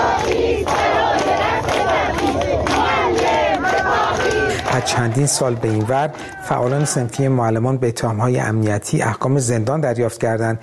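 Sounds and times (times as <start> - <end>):
teachers' protest rally crowd chanting: 0.0 - 7.7
speech: 4.8 - 10.6.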